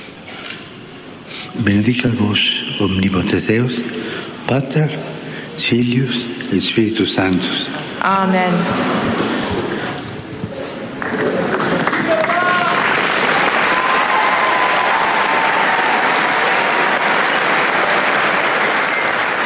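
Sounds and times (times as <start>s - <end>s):
speech: 1.3s - 9.2s
large crowd applause: 10.6s - 19.4s.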